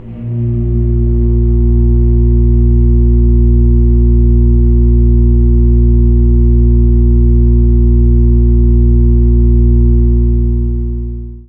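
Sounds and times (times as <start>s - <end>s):
church organ note C sharp 2 from AKAI S-612 and S-900 samplers: 0.0s - 11.3s.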